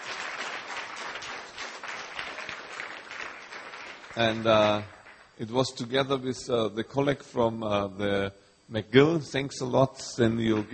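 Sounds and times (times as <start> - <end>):
audience applause: 0.0 - 5.3
speech: 4.2 - 10.7.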